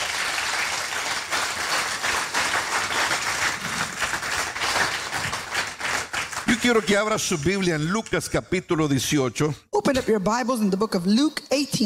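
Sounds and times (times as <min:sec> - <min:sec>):
church congregation applause during a bilingual service: 0:00.0 - 0:07.6
speech: 0:06.6 - 0:11.8.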